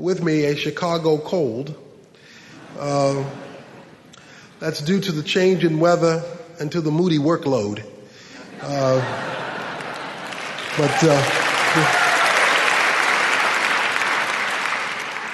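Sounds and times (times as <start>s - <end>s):
speech: 0.0s - 1.8s, 2.8s - 3.5s, 4.6s - 7.9s, 8.6s - 9.3s, 10.8s - 12.0s
laughter: 2.5s - 5.3s, 8.3s - 12.2s
audience clapping: 9.3s - 15.3s.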